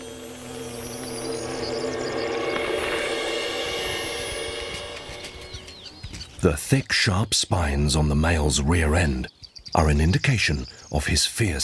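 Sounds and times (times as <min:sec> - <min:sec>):
wool carder bee buzzing: 0:00.0 - 0:06.2
speech: 0:06.4 - 0:11.6.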